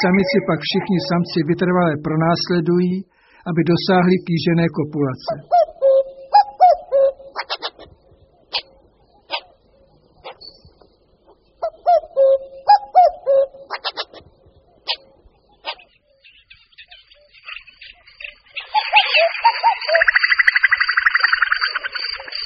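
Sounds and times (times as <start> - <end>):
common cuckoo calling: 0.0 - 1.9, 5.1 - 22.4
speech: 0.0 - 5.6
another bird giving a loud rapid buzzy trill: 5.5 - 10.6, 11.6 - 22.4.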